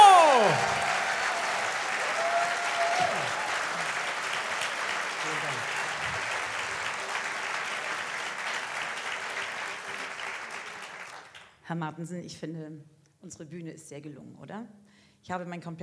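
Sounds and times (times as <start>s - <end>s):
live audience applause: 0.0s - 11.4s
speech: 11.7s - 15.8s.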